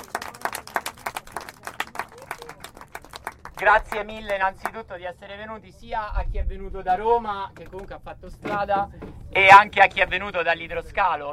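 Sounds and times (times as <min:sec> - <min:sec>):
applause: 0:00.0 - 0:04.8
speech: 0:03.6 - 0:11.3.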